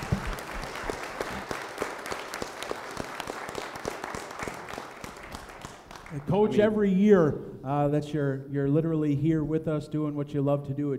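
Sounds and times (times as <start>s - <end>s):
audience applause: 0.0s - 6.5s
speech: 6.2s - 10.9s.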